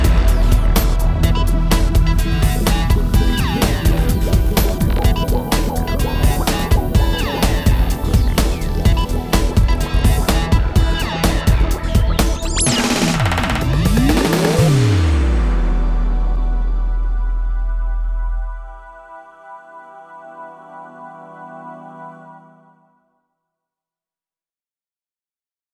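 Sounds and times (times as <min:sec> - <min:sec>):
big beat music on a Roland Fantom X: 0:00.0 - 0:18.5.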